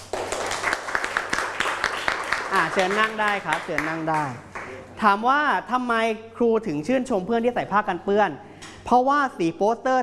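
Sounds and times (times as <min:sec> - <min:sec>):
schoolchildren clapping in a classroom: 0:00.0 - 0:04.8
speech: 0:02.5 - 0:10.0.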